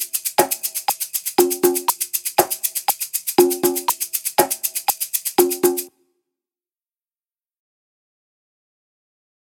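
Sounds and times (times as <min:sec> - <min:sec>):
congas: 0:00.0 - 0:05.9
shaker: 0:00.0 - 0:06.0.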